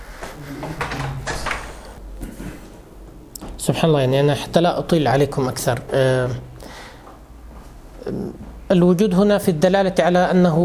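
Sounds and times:
door being opened: 0.4 - 2.0
speech: 3.6 - 6.5, 8.7 - 10.6.

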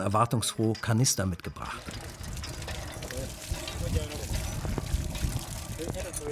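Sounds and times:
speech: 0.0 - 2.1
low clattering: 0.7 - 6.3
water gushing from hand pump spout: 1.6 - 6.3.

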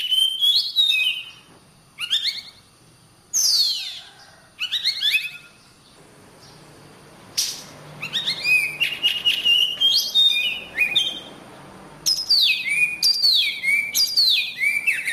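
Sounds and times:
oriental magpie-robin singing: 0.0 - 2.6, 3.3 - 6.7, 7.4 - 11.4, 12.0 - 15.1.

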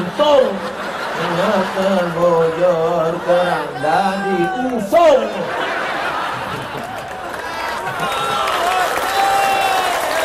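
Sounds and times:
crowd cheering: 0.0 - 10.2
laughter: 0.0 - 10.2
speech: 0.2 - 5.8
crowd clapping: 6.4 - 10.2.

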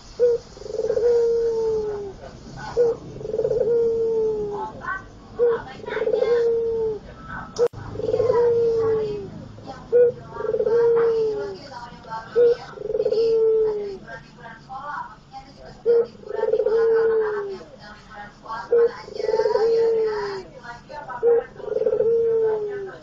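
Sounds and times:
Barbary dove cooing: 0.0 - 14.4, 15.2 - 23.0.

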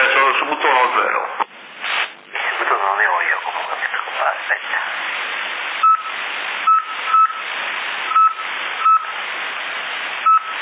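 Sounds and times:
hissing band-limited radio static: 0.0 - 10.6
short mid-pitched tones sent over CB radio in Sassari Italy: 1.1 - 5.0, 5.7 - 9.3.

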